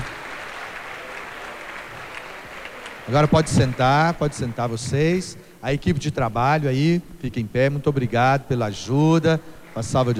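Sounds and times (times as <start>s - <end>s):
audience applause for retreat participants: 0.0s - 4.8s, 9.7s - 10.1s
speech: 3.1s - 10.1s.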